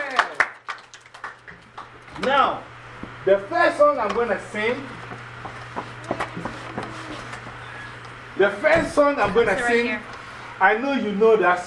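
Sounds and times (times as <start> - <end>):
audience clapping hands at a performer's request: 0.0 - 2.3
speech: 2.2 - 5.0, 8.4 - 11.6
faint voices murmuring: 4.9 - 10.2.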